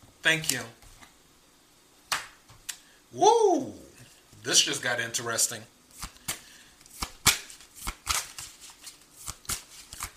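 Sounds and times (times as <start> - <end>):
speech: 0.2 - 0.8, 3.1 - 3.8, 4.4 - 5.7
playing cards being dealt: 5.9 - 10.1.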